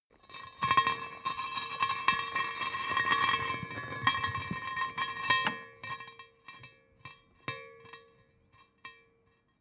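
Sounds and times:
small metal object rolling: 0.3s - 5.9s.

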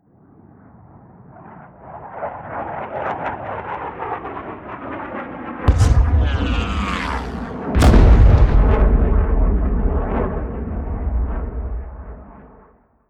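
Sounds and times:
air strike: 5.7s - 12.6s.

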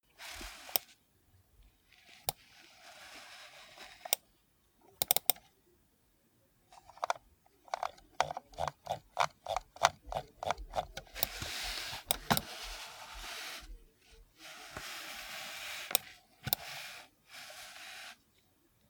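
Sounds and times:
computer mouse in use: 4.0s - 4.3s, 5.0s - 5.5s, 6.9s - 13.4s, 14.7s - 16.8s.

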